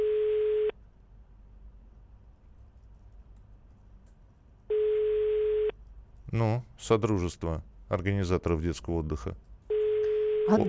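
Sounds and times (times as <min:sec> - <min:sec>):
telephone call tones: 0:00.0 - 0:00.8, 0:04.7 - 0:05.8, 0:09.7 - 0:10.6
speech: 0:06.3 - 0:09.5, 0:10.5 - 0:10.6.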